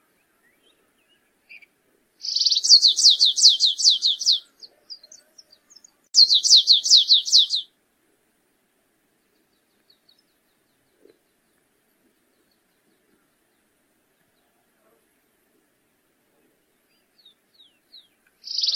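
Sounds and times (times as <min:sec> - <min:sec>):
stripe-tailed yellow finch song with buzzing trill and down-slurred notes: 0:02.2 - 0:04.4, 0:06.2 - 0:07.6.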